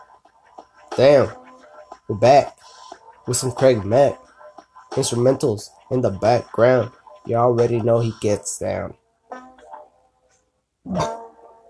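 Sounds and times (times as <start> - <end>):
speech: 1.0 - 1.4, 2.1 - 2.6, 3.2 - 4.2, 5.0 - 9.0
person burping: 10.9 - 11.2.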